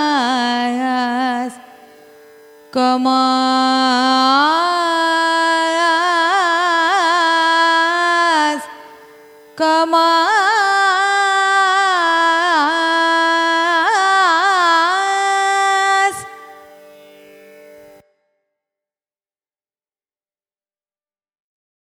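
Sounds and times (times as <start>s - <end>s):
Carnatic music in raga Khamas: 0.0s - 18.5s.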